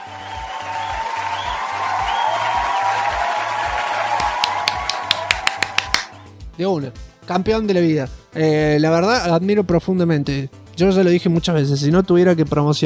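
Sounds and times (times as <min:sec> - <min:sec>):
applause: 0:00.0 - 0:06.2
speech: 0:06.6 - 0:12.8.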